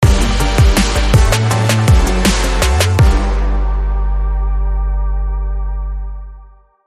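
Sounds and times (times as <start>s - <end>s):
brass kicker: 0.0s - 5.4s.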